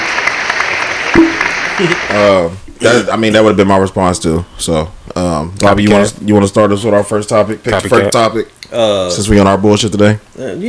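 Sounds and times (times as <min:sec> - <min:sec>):
canned applause sound effect from soundboard button: 0:00.0 - 0:03.6
speech: 0:01.2 - 0:10.6.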